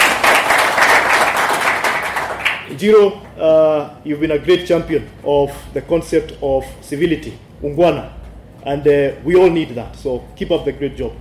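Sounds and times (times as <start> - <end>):
audience applause for a former governor: 0.0 - 2.7
speech: 2.8 - 11.1.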